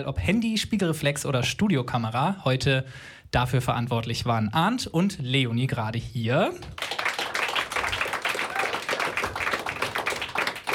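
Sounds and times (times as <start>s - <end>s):
speech: 0.0s - 7.0s
audience applause: 6.7s - 10.7s.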